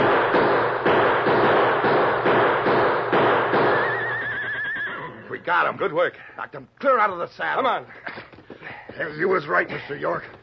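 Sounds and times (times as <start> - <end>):
volley of gunshots: 0.0 - 4.3
speech: 5.5 - 8.2, 9.0 - 10.4.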